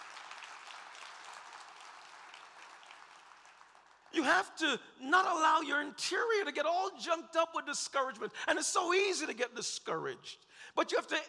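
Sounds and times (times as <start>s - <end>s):
audience applause: 0.0s - 4.2s
speech: 4.1s - 11.2s.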